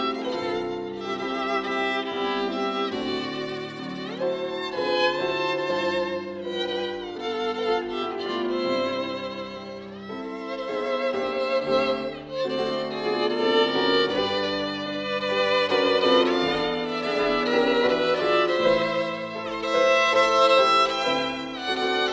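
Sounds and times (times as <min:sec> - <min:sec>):
piano: 0:00.0 - 0:22.1
violin: 0:00.0 - 0:22.1.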